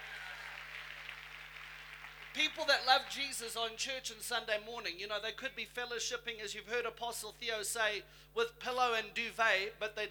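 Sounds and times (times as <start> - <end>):
church audience applause: 0.0 - 2.6
speech: 2.4 - 10.1.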